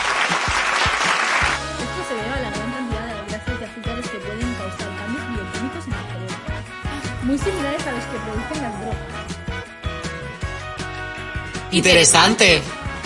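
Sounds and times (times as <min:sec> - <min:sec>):
audience applause: 0:00.0 - 0:01.7
music with a steady bass line: 0:00.8 - 0:13.0
speech: 0:07.3 - 0:09.3, 0:11.7 - 0:12.8.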